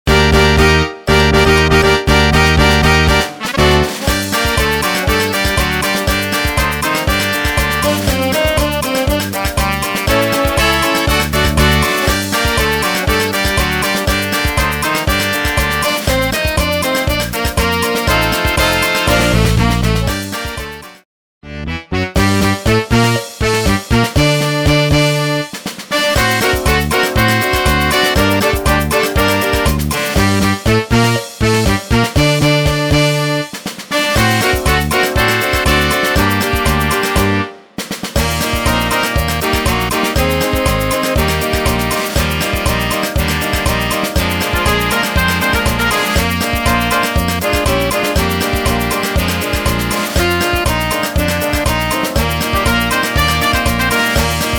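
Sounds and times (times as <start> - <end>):
samba music: 0.0 - 21.0, 22.0 - 54.5.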